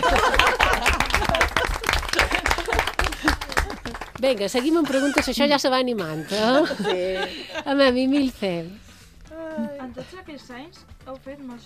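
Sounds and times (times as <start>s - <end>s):
applause: 0.0s - 5.4s
laughter: 0.0s - 8.6s
speech: 4.2s - 8.8s, 9.6s - 11.6s.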